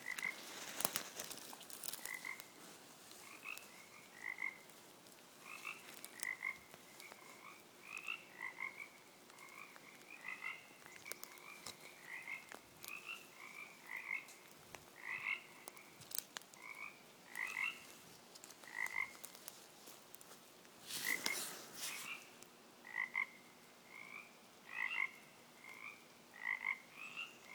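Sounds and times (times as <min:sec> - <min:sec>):
frogs: 0:00.0 - 0:04.8, 0:05.4 - 0:19.5, 0:22.0 - 0:27.5.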